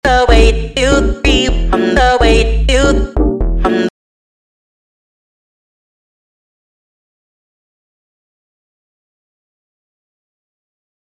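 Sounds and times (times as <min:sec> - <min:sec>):
music beat: 0:00.1 - 0:03.9.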